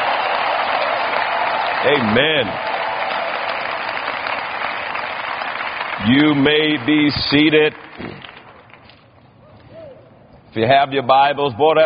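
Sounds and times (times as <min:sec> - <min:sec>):
audience clapping hands in praise: 0:00.0 - 0:09.0
speech: 0:01.8 - 0:02.7, 0:06.0 - 0:08.3, 0:10.6 - 0:11.8.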